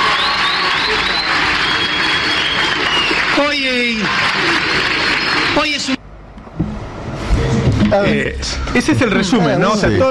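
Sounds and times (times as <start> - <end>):
audience applause: 0.0 - 6.0
speech: 5.6 - 6.1, 7.9 - 10.0.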